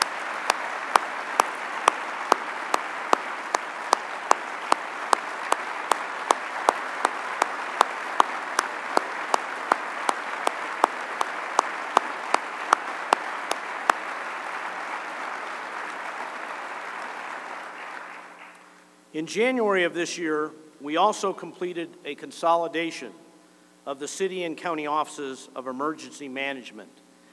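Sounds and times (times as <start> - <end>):
audience applauding: 0.0 - 18.6
speech: 19.2 - 23.2, 23.9 - 27.0.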